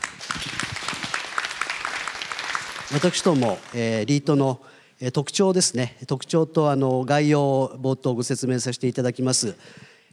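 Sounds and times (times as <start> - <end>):
crowd applauding: 0.0 - 3.8
speech: 2.9 - 10.1.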